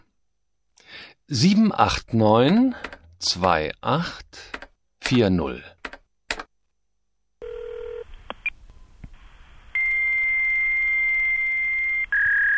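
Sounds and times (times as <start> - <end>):
speech: 1.0 - 5.7
click: 4.5 - 4.7
hissing phone line: 9.2 - 12.5
fax answering whistle: 9.8 - 12.5.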